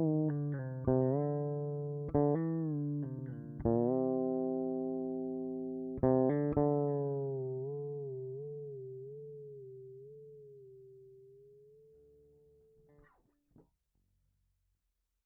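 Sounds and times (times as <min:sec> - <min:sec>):
guitar whammy drop tune: 0:00.0 - 0:11.4.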